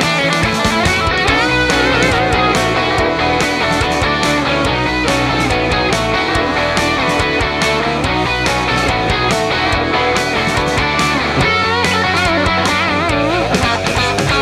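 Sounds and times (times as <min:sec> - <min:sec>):
song in the Mojave: 0:00.1 - 0:14.3.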